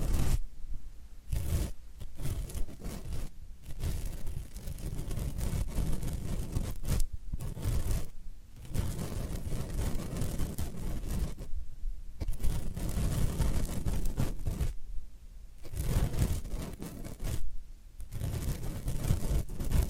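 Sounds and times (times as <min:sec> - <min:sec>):
floral foam being crunched and scraped: 0:00.0 - 0:00.4, 0:01.3 - 0:11.5, 0:12.2 - 0:14.8, 0:15.6 - 0:17.4, 0:18.0 - 0:19.8.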